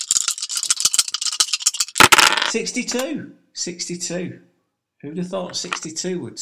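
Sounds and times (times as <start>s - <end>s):
dice shaken in a dice cup: 0.0s - 3.0s
speech: 2.5s - 6.4s.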